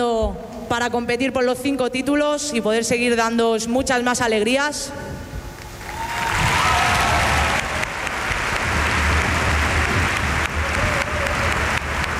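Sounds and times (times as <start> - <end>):
speech: 0.0 - 5.3
audience applause: 5.8 - 12.1.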